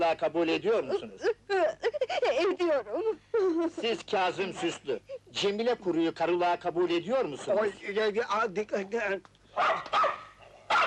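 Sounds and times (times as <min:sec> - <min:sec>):
speech: 0:00.0 - 0:01.8, 0:02.4 - 0:10.1
dog barking at a civil wedding ceremony: 0:09.6 - 0:10.8.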